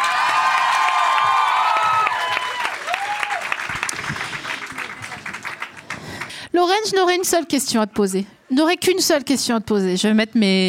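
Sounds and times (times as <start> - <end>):
crowd cheering and whooping: 0.0 - 5.4
crowd applauding: 0.0 - 6.4
speech: 6.6 - 10.6.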